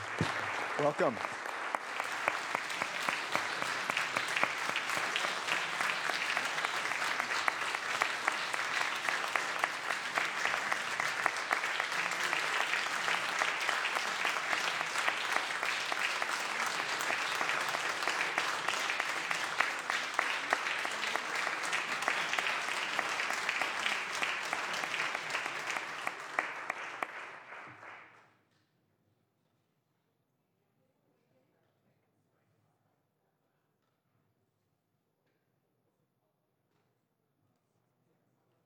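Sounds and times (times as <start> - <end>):
applause on the Senate floor of the Capitol welcoming guests: 0.0 - 28.4
speech: 0.8 - 1.4.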